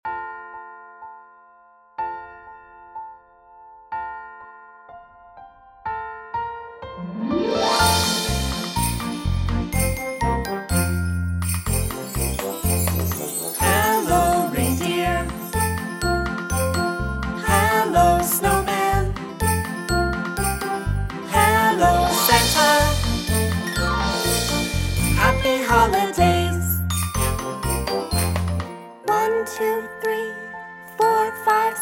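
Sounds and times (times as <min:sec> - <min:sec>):
children's Christmas song: 0:07.0 - 0:31.8.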